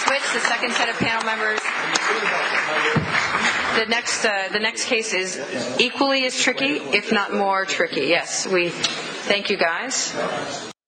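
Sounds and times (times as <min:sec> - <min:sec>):
audience applause: 0:00.0 - 0:04.3
speech: 0:00.1 - 0:10.7.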